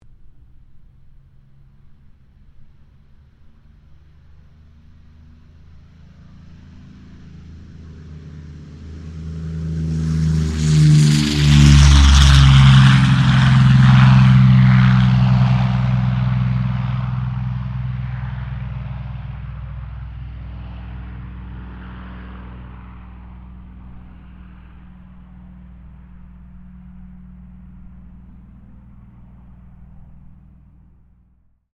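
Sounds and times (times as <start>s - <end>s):
P-40 Kittyhawk aircraft taking off: 0.0s - 31.5s.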